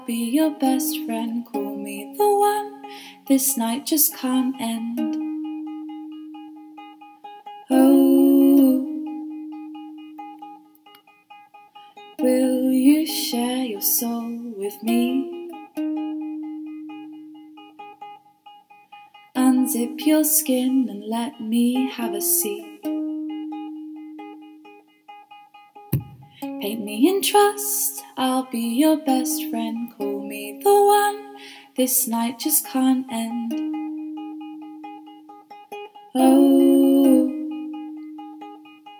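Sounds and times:
person singing: 0.0s - 5.8s, 7.7s - 10.3s, 12.0s - 16.8s, 19.4s - 24.0s, 26.0s - 34.2s, 36.0s - 38.3s
ukulele not tuned properly: 0.0s - 38.9s.

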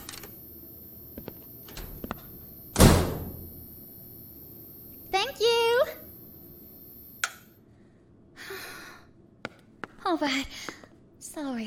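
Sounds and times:
door slamming shut: 2.7s - 3.4s
speech: 10.1s - 11.6s.

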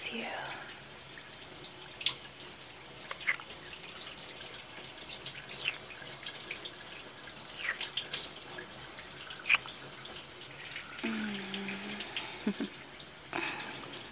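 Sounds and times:
water splashing while washing someone's back: 1.9s - 14.0s.

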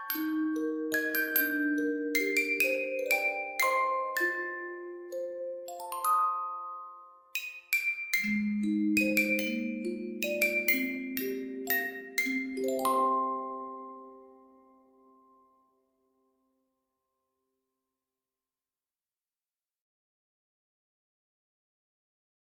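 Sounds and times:
lullaby music: 0.0s - 16.2s.

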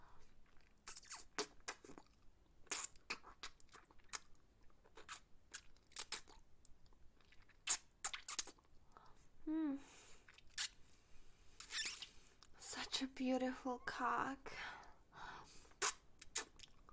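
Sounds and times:
faint wet licking and mouth sounds: 0.4s - 6.4s, 7.2s - 9.0s, 11.6s - 12.1s, 15.7s - 16.9s
brief low vocal sound: 9.4s - 9.8s
speech: 13.2s - 14.7s.

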